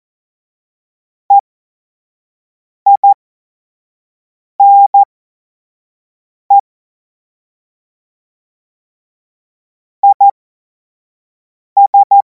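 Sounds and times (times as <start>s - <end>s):
Morse code course tones: 2.9s - 3.2s, 4.6s - 5.0s, 11.8s - 12.2s.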